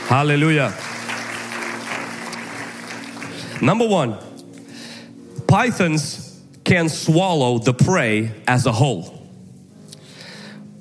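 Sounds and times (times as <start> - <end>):
audience clapping: 0.0 - 4.2
speech: 0.1 - 0.9, 3.6 - 4.3, 5.5 - 9.2.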